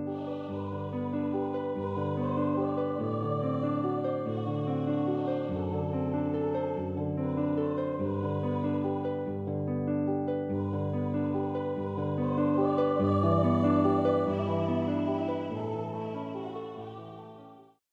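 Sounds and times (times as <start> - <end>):
person singing: 0.1 - 9.4, 10.5 - 17.7.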